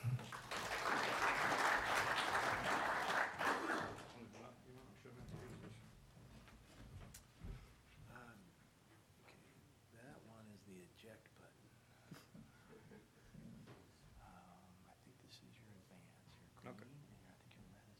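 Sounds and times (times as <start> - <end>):
audience applause welcoming a speaker at a company presentation: 0.0 - 4.2.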